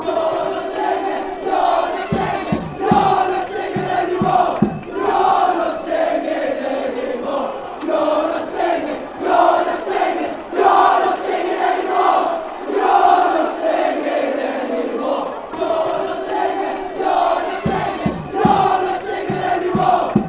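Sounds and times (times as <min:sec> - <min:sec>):
fans chanting: 0:00.0 - 0:20.2.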